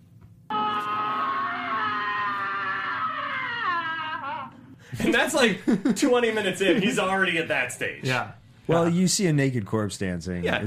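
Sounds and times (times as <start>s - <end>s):
man screaming on waking from a dream: 0.5s - 4.8s
laughter: 0.8s - 7.2s
speech: 4.9s - 10.6s.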